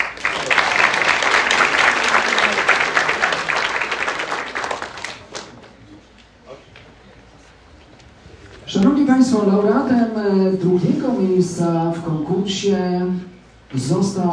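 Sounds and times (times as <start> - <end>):
audience applause: 0.0 - 6.0
speech: 9.1 - 14.3.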